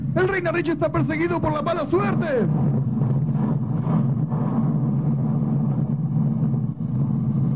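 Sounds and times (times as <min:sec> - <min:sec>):
volcano eruption explosion rumble: 0:00.0 - 0:07.5
speech: 0:00.2 - 0:02.9.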